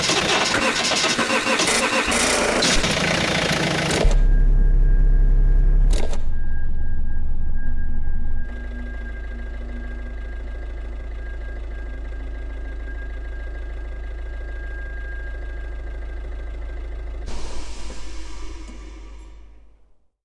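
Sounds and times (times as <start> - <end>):
engine: 0.0 - 19.9.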